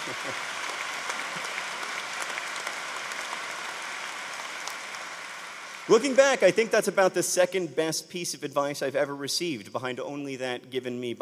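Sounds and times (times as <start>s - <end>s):
parents in a crowd applauding: 0.0s - 7.0s
speech: 0.1s - 0.6s, 5.9s - 11.1s.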